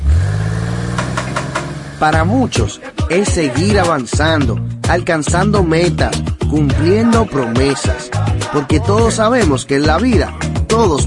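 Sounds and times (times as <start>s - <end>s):
car engine starting and revving: 0.0s - 2.8s
speech: 2.0s - 11.0s.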